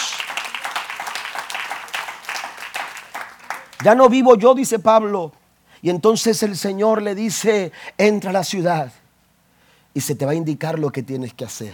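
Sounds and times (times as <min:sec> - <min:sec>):
audience applauding: 0:00.0 - 0:04.0
speech: 0:03.8 - 0:09.0, 0:10.0 - 0:11.7.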